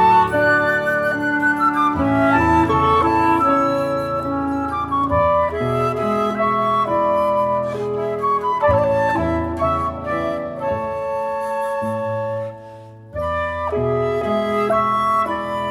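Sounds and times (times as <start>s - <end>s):
clarinet: 0.0s - 15.6s
piano: 0.0s - 15.6s
transverse flute: 0.0s - 15.6s.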